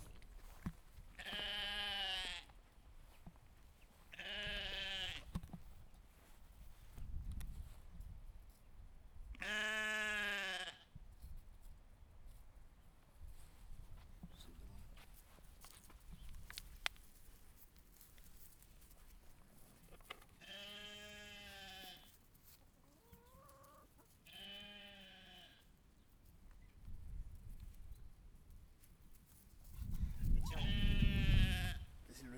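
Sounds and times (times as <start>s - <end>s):
rustling and shuffling: 0.0s - 1.4s, 5.2s - 8.8s, 11.1s - 20.4s, 21.5s - 24.3s, 26.0s - 30.6s
sheep bleating: 1.2s - 2.5s, 4.1s - 5.3s, 9.4s - 10.9s, 20.4s - 22.1s, 24.3s - 25.6s, 30.4s - 31.9s.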